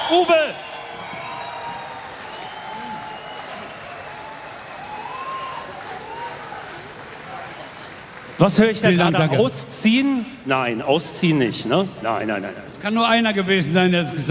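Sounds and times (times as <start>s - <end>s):
audience applause for a band: 0.0s - 10.0s
speech: 0.1s - 0.7s, 8.4s - 14.2s.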